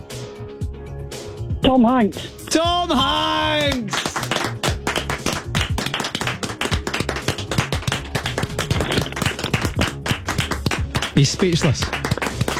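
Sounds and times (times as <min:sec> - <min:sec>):
speech: 0:01.6 - 0:04.1, 0:11.2 - 0:12.5
hand clapping: 0:03.5 - 0:12.5.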